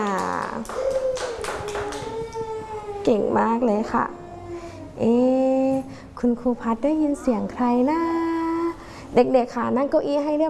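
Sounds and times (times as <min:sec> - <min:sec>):
small group of children clapping in applause: 0:00.0 - 0:02.5
speech: 0:03.1 - 0:04.2, 0:05.0 - 0:08.1, 0:09.1 - 0:10.4.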